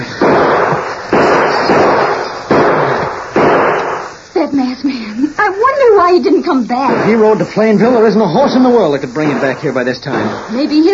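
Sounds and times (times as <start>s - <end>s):
gunshots: 0.0s - 4.2s, 6.8s - 7.5s, 9.2s - 10.9s
speech: 4.5s - 10.9s.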